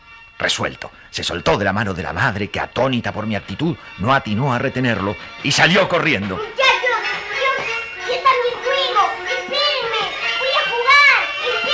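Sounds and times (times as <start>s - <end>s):
speech: 0.4s - 7.2s
children shouting and squealing while playing: 6.3s - 11.7s.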